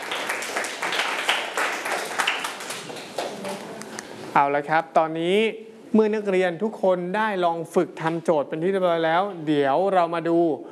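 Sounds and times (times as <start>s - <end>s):
classroom clapping: 0.0s - 4.0s
speech: 4.4s - 10.7s.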